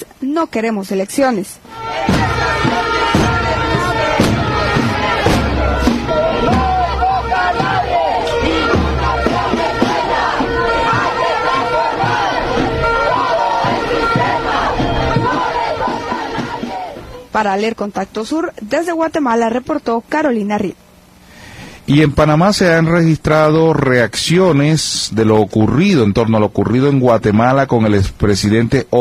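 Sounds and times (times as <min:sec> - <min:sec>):
speech: 0:00.2 - 0:01.7, 0:17.4 - 0:20.8, 0:21.9 - 0:29.0
sharp percussive beats: 0:01.7 - 0:17.1
large crowd of protesters shouting and chanting: 0:01.7 - 0:17.3.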